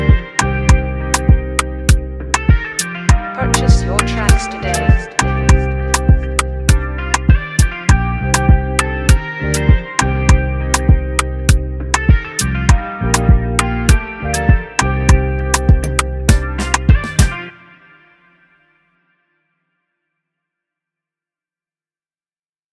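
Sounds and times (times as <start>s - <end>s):
beat: 0.0s - 17.5s.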